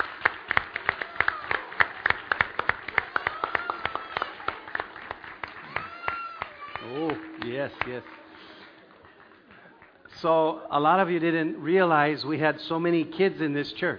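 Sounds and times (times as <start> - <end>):
audience clapping for children: 0.0 - 10.3
speech: 7.6 - 8.2, 10.2 - 13.9.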